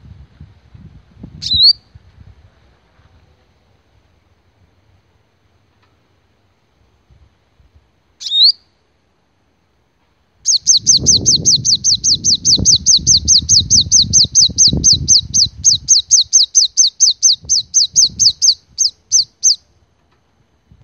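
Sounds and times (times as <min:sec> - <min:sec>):
sepah raja ribut bird lure call: 0:10.5 - 0:19.6.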